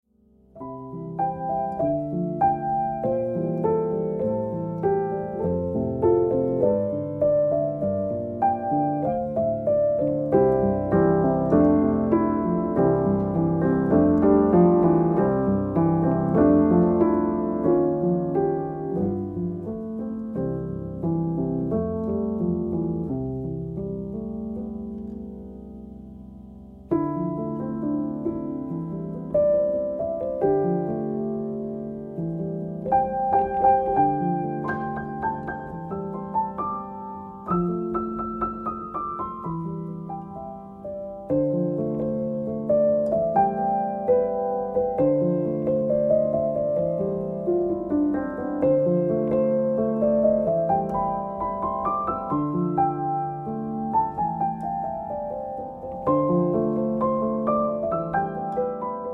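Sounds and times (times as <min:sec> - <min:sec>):
piano: 0:00.0 - 0:59.1.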